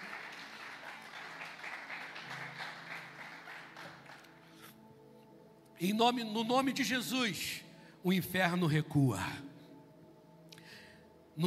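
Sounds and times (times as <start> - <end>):
audience applause: 0.0 - 4.4
speech: 5.8 - 9.5.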